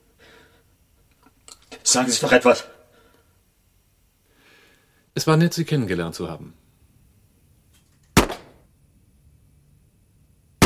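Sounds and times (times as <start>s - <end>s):
speech: 1.9s - 2.8s, 5.2s - 6.6s
gunshots: 8.2s - 8.6s.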